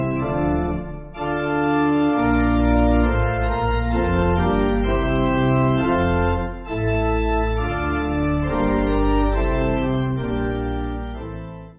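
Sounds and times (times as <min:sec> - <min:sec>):
pipe organ church backing music: 0:00.0 - 0:11.7.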